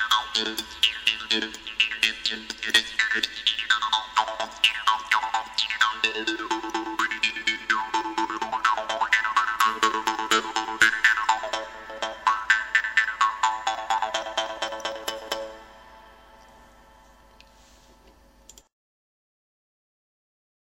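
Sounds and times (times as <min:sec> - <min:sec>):
jew's harp twanging: 0:00.0 - 0:15.8.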